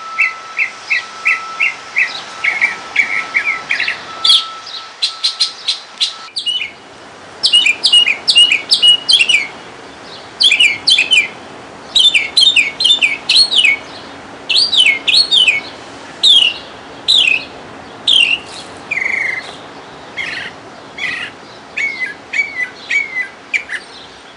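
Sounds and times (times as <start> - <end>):
young mockingbird singing: 0.0 - 24.3.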